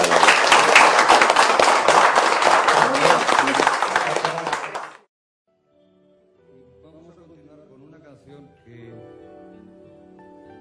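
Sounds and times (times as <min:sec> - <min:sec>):
crowd applause: 0:00.0 - 0:05.1.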